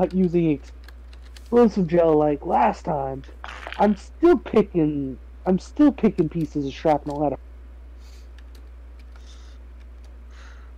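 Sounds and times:
speech: 0:00.0 - 0:00.8, 0:01.5 - 0:07.5
many dice rolling: 0:03.4 - 0:04.0.

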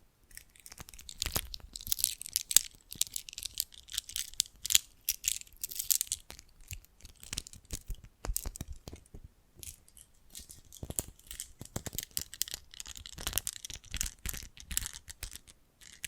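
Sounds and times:
jewelry and bracelets clicking, crinkling and rattling: 0:00.3 - 0:16.0.

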